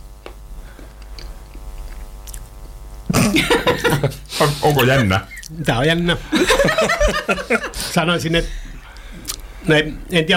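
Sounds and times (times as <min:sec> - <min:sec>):
chewing and tasting a spoonful of liver casserole: 0:00.8 - 0:02.6, 0:08.9 - 0:09.5
laughter: 0:03.1 - 0:09.0
speech: 0:03.4 - 0:08.7, 0:09.6 - 0:10.3.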